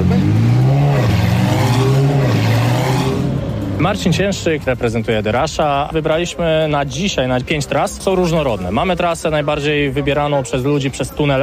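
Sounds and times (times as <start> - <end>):
sports car engine revving: 0.0 - 5.1
speech: 3.8 - 11.4.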